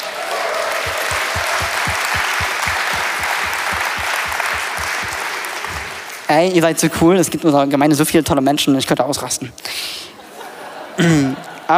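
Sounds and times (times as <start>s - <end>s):
audience applause: 0.0s - 6.3s
speech: 6.3s - 10.0s, 11.0s - 11.7s.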